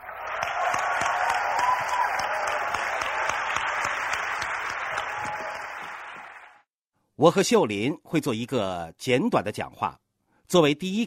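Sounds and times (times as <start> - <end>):
audience applause: 0.0 - 6.7
speech: 7.2 - 11.0.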